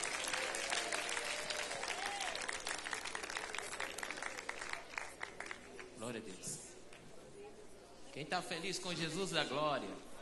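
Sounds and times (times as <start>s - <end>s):
audience applauding: 0.0s - 5.9s
speech: 6.0s - 6.7s, 8.2s - 10.1s.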